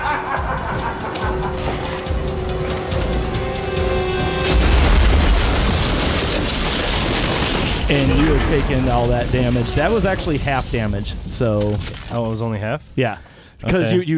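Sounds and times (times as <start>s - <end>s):
laughter: 0.0s - 2.4s
humming mechanical drone: 0.0s - 12.1s
roaring crackling blast: 0.6s - 12.4s
big explosion boom: 1.3s - 12.1s
speech: 7.9s - 14.1s.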